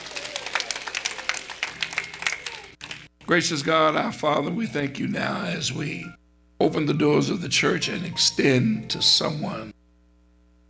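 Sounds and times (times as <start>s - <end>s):
audience clapping hands in praise: 0.0s - 3.2s
speech: 3.3s - 9.7s.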